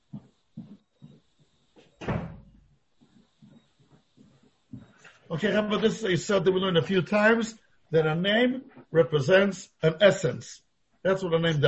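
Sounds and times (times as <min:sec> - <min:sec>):
door closing: 0:01.9 - 0:02.7
speech: 0:05.3 - 0:11.6.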